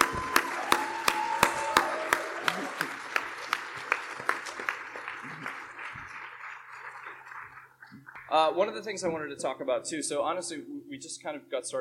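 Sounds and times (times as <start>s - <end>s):
audience applause: 0.0s - 8.5s
speech: 8.4s - 11.7s.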